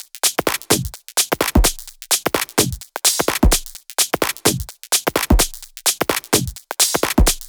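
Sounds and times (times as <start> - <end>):
drum kit at 128 BPM: 0.0 - 7.4.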